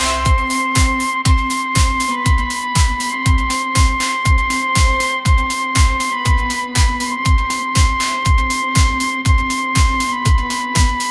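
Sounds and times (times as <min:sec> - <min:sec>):
pop ringtone: 0:00.0 - 0:11.0.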